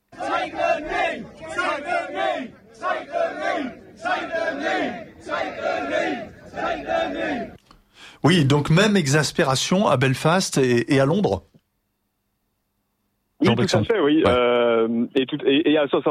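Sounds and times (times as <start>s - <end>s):
large crowd of protesters chanting: 0.0s - 7.6s
speech: 8.2s - 11.5s, 13.6s - 16.0s.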